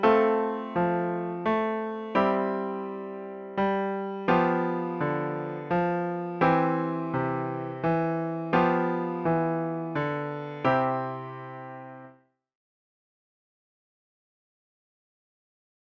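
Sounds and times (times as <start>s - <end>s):
slow music in C: 0.0s - 12.2s.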